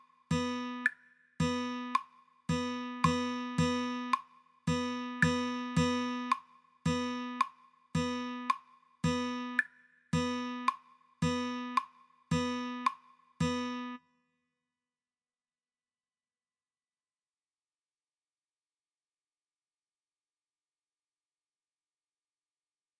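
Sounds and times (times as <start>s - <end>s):
rhythm practice: 0.0s - 14.0s.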